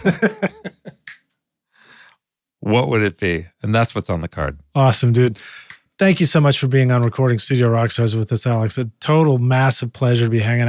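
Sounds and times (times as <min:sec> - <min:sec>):
speech: 0:00.0 - 0:00.6, 0:02.6 - 0:10.6
laughter: 0:00.0 - 0:01.2
finger snap: 0:01.0 - 0:01.3, 0:05.6 - 0:05.9.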